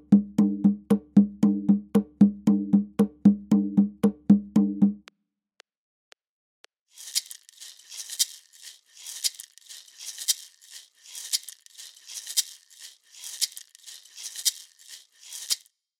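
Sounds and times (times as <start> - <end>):
Latin American cumbia music: 0.0 - 5.0.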